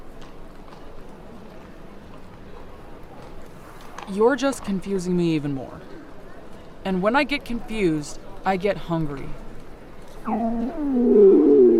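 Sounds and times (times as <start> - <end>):
speech: 4.1 - 6.0, 6.8 - 9.4, 10.2 - 11.5
stomach growling: 10.2 - 11.7.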